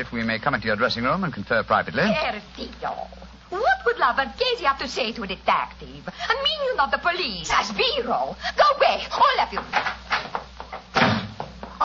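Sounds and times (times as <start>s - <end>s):
speech: 0.0s - 10.4s
door slammed shut: 10.9s - 11.6s.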